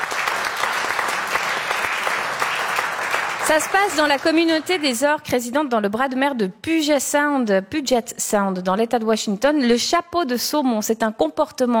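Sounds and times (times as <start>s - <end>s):
audience applause: 0.0s - 4.9s
speech: 3.5s - 11.7s.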